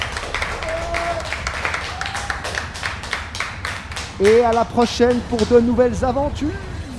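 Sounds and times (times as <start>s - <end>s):
crowd applause: 0.0s - 5.2s
speech: 4.2s - 6.7s.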